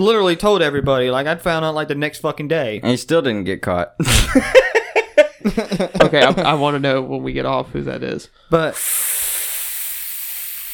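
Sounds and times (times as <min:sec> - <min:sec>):
speech: 0:00.0 - 0:04.8, 0:05.4 - 0:09.1
laughter: 0:04.0 - 0:06.6
voice imitating a vacuum cleaner: 0:08.7 - 0:10.0.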